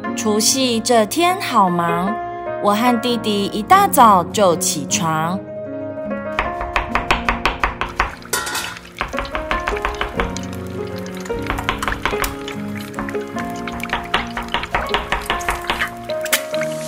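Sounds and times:
speech: 0.2 - 5.5
knife chopping food on a board: 6.4 - 8.2, 9.0 - 10.3, 13.8 - 15.9
liquid pouring: 7.9 - 16.8.

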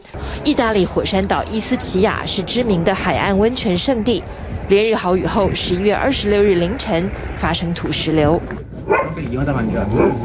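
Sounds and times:
speech: 0.4 - 10.2
small dog barking: 8.8 - 9.2, 9.9 - 10.2.

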